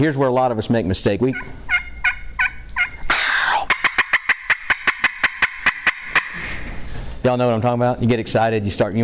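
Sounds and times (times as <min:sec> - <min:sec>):
speech: 0:00.0 - 0:01.8, 0:07.2 - 0:09.0
wild turkey gobbling: 0:00.0 - 0:07.0.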